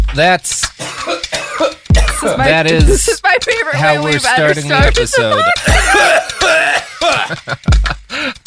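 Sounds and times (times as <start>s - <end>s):
speech: 0.2s - 6.4s, 7.1s - 7.9s
person coughing after smoking marijuana: 0.8s - 2.4s, 5.6s - 7.4s
laughter: 2.2s - 8.3s.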